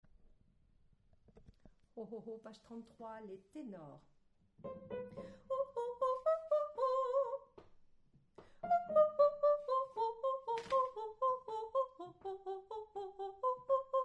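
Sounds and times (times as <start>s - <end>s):
tenor singing: 4.7s - 7.5s, 8.6s - 14.0s.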